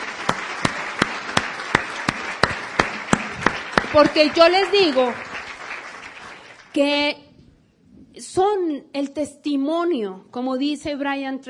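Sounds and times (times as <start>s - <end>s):
sharp evenly spaced claps: 0.0s - 6.7s
audience applause: 0.0s - 6.8s
speech: 3.9s - 5.3s, 6.8s - 7.2s, 8.2s - 11.4s.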